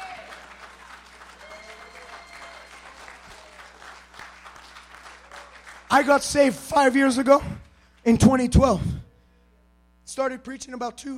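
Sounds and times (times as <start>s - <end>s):
audience clapping hands: 0.0s - 6.9s
speech: 5.9s - 9.0s, 10.2s - 11.1s.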